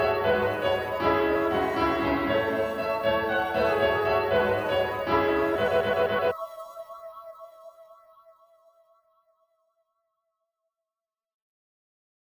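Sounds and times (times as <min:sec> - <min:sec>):
midi music: 0:00.0 - 0:06.3.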